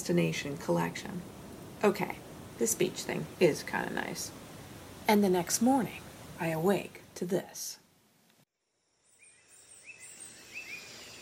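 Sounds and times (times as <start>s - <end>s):
speech: 0.0s - 4.4s, 5.1s - 7.8s
faint hiss: 0.0s - 11.1s
small bird chirping near window: 9.0s - 11.1s.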